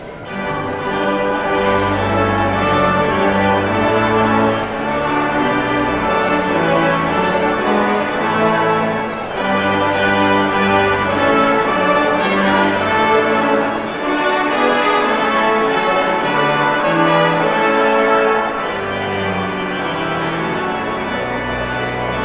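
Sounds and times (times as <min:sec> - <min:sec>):
postlude: 0:00.0 - 0:22.2.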